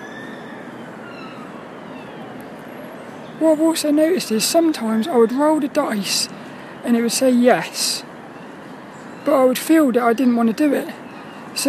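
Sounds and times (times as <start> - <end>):
ambulance siren: 0.0 - 6.8
traffic rumble: 0.0 - 11.6
speech: 3.4 - 8.1, 9.2 - 11.0.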